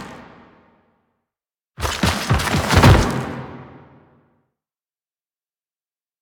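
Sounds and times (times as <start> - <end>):
foley footsteps: 1.8 - 4.0.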